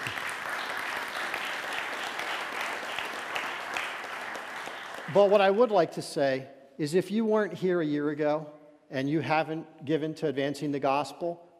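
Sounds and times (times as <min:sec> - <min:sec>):
church audience applauding: 0:00.0 - 0:05.8
speech: 0:05.1 - 0:11.5.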